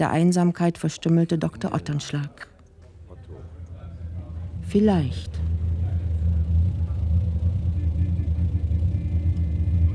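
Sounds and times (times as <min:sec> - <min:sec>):
speech: 0:00.0 - 0:02.5, 0:04.7 - 0:05.5
car engine idling: 0:03.5 - 0:09.9.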